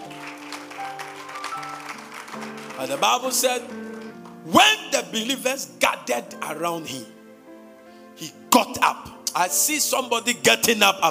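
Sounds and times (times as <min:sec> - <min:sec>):
audience clapping: 0:00.0 - 0:04.5
speech: 0:02.4 - 0:07.2, 0:08.2 - 0:11.0.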